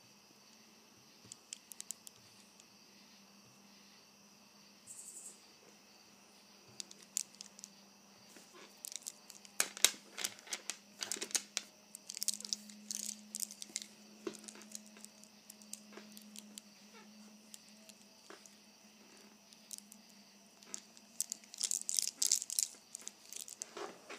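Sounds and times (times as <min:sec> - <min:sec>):
bracelet clicking and rattling: 0:01.3 - 0:02.6, 0:06.8 - 0:07.8, 0:08.4 - 0:16.7, 0:17.5 - 0:18.6, 0:19.5 - 0:23.8.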